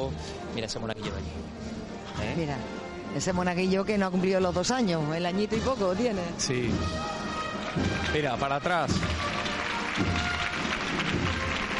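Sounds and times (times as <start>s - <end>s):
speech: 0.0s - 9.3s, 10.0s - 10.4s
street crowd applause at procession: 7.0s - 11.7s.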